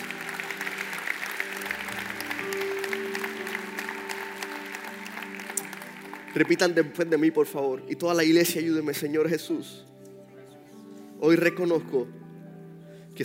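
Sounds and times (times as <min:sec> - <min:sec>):
audience applause: 0:00.0 - 0:07.3
sustained keyboard or organ chords: 0:00.0 - 0:13.2
speech: 0:06.4 - 0:09.9, 0:11.2 - 0:12.2.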